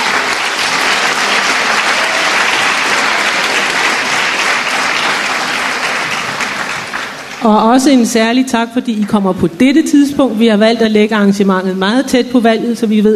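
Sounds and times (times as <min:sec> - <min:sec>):
audience applauding politicians at an election event at Frederikshavn Gymnasium and HF-kursus: 0:00.0 - 0:07.6
speech: 0:07.4 - 0:13.1.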